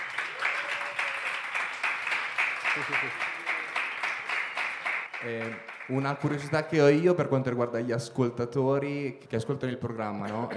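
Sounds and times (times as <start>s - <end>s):
applause from many hands: 0.0s - 7.0s
speech: 2.8s - 3.3s, 5.2s - 10.5s.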